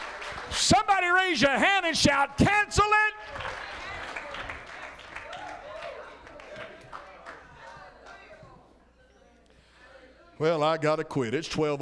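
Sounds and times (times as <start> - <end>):
audience clapping: 0.0 - 1.3, 2.8 - 8.2
speech: 0.5 - 3.5, 10.4 - 11.7.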